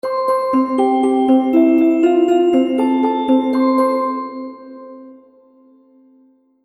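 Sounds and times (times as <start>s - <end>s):
happy baby game music: 0.3s - 4.5s.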